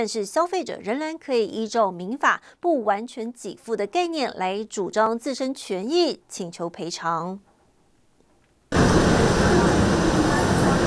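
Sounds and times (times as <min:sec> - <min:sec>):
speech: 0:00.0 - 0:07.5
train arriving at a station: 0:08.7 - 0:10.8.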